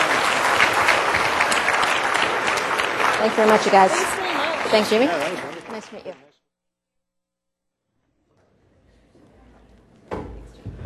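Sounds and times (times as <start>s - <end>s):
audience applause: 0.0s - 6.3s
speech: 3.2s - 6.3s.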